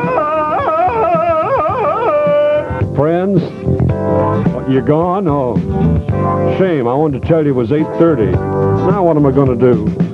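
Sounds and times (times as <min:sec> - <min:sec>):
Tarzan yell, sustained yodelling cry: 0:00.0 - 0:02.6
speech: 0:03.0 - 0:03.6, 0:04.7 - 0:10.1.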